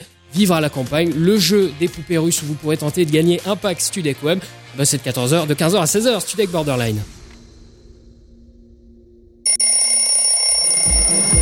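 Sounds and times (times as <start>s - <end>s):
speech: 0.4s - 7.2s
alarm clock ringing: 9.5s - 11.4s.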